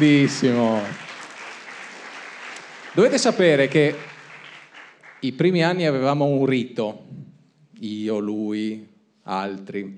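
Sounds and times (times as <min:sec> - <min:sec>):
speech: 0:00.0 - 0:01.0, 0:03.0 - 0:04.1, 0:05.2 - 0:07.2, 0:07.8 - 0:09.9
audience applause: 0:00.0 - 0:05.3.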